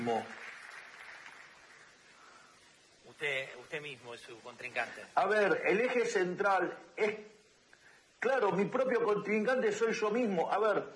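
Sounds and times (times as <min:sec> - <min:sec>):
speech: 0:00.0 - 0:00.4, 0:03.2 - 0:07.4, 0:08.2 - 0:10.9
audience applause: 0:00.0 - 0:02.1.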